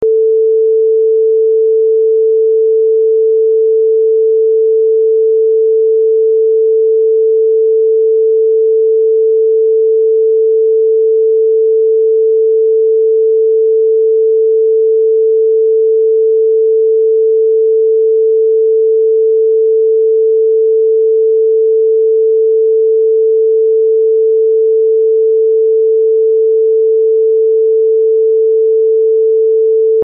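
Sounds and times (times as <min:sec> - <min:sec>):
443 Hz tone in right channel: 0:00.0 - 0:30.0.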